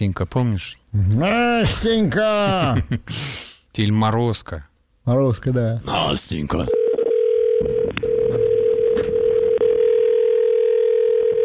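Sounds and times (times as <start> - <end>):
speech: 0.0 - 6.8
American long telephone ringback tone: 6.7 - 11.4.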